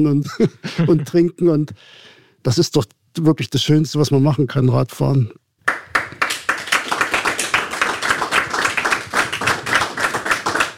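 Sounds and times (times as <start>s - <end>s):
speech: 0.0s - 5.4s
group applause: 5.6s - 10.7s.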